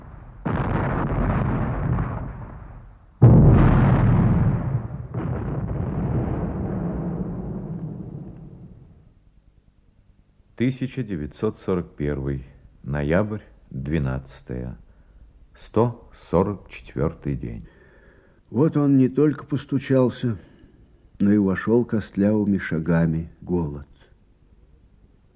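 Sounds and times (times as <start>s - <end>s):
gunfire: 0.0s - 8.7s
explosions: 0.0s - 9.1s
speech: 10.6s - 14.8s, 15.6s - 17.8s, 18.5s - 20.5s, 21.2s - 23.9s.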